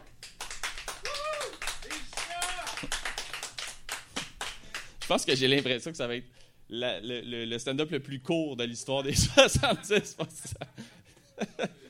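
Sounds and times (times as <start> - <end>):
crowd applause: 0.3 - 5.0
people whooping: 0.9 - 3.0
speech: 5.1 - 10.7.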